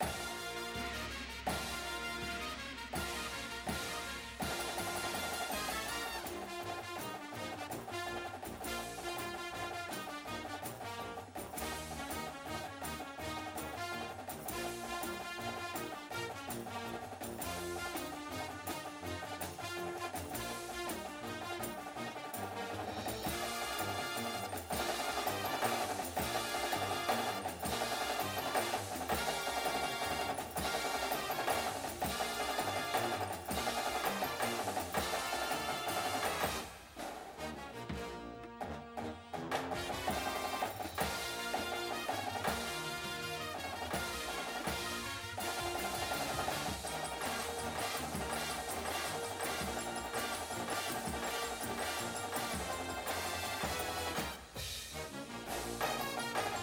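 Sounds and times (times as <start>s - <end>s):
music: 0.0s - 56.6s
snare drum: 0.0s - 56.6s.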